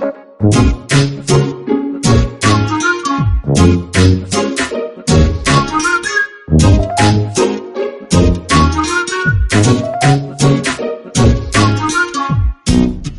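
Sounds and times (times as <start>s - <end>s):
tuba playing hip hop: 0.0s - 4.3s, 5.1s - 7.4s, 8.1s - 13.0s.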